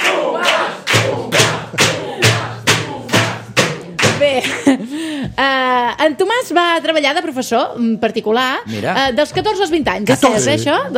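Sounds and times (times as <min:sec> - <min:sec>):
crowd clapping in rhythm: 0:00.0 - 0:04.8
deep thumping beat: 0:00.9 - 0:04.4
speech: 0:05.4 - 0:10.9.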